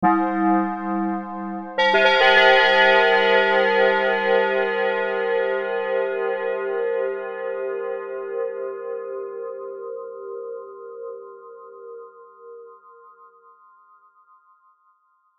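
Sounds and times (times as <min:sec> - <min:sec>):
bells: 0:00.0 - 0:09.7.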